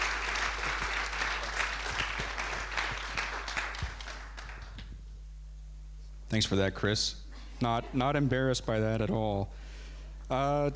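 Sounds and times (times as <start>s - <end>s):
church congregation at Meadowbrook Church applauding a preacher: 0.0s - 4.9s
speech: 6.4s - 9.7s, 10.3s - 10.7s.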